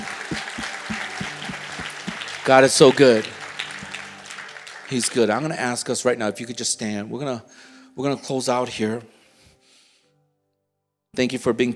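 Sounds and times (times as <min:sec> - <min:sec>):
audience applause: 0:00.0 - 0:05.8
speech: 0:02.4 - 0:03.4, 0:04.9 - 0:09.2, 0:11.2 - 0:11.7.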